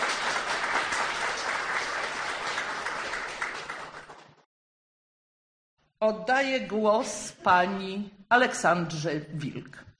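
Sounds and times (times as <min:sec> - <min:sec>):
audience applause welcoming guests: 0:00.0 - 0:04.4
speech: 0:06.0 - 0:09.9.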